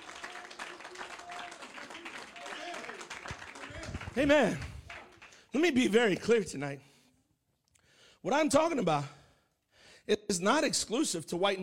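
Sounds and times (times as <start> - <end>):
audience hand clapping: 0.0 - 6.3
speech: 4.2 - 4.7, 5.5 - 6.9, 8.2 - 9.2, 10.3 - 11.6.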